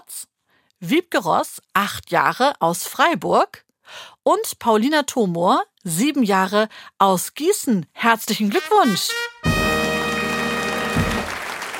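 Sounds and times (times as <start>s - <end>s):
speech: 0.1s - 9.3s
sustained bright brass-like chord: 8.6s - 11.4s
loud drum roll: 9.5s - 11.6s.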